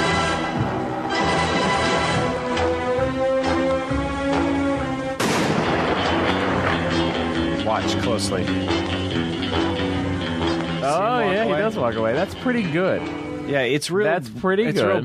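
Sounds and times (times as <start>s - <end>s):
orchestral music in a film gun barrel opening: 0.0s - 13.5s
gunshot in a James Bond gun barrel opening: 5.2s - 6.8s
speech: 7.9s - 8.9s, 10.8s - 15.0s.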